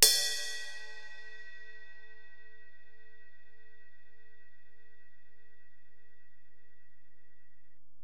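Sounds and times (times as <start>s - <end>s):
Alesis DM-PRO drum machine ride cymbal: 0.0s - 1.9s.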